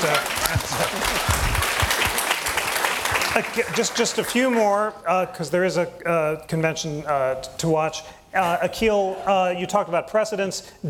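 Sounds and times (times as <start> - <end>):
audience applause: 0.0 - 4.7
speech: 3.4 - 10.8.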